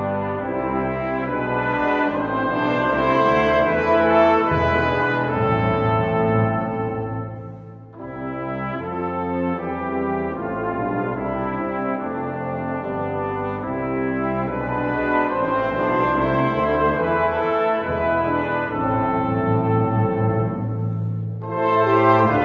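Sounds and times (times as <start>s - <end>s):
brass choir playing a chorale: 0.0s - 22.4s.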